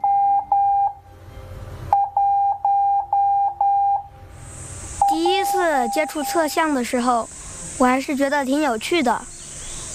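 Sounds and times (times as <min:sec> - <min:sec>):
Morse code beeps on radio: 0:00.0 - 0:01.0, 0:01.9 - 0:04.1, 0:05.0 - 0:06.8
speech: 0:05.8 - 0:09.3.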